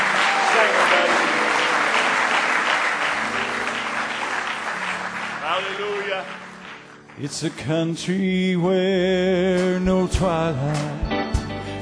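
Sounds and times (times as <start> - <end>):
audience clapping hands in praise: 0.0 - 8.7
speech: 7.2 - 11.0.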